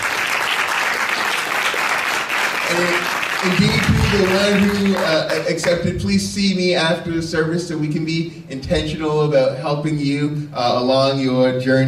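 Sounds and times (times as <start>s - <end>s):
audience applauding: 0.0s - 5.8s
speech: 2.7s - 11.8s.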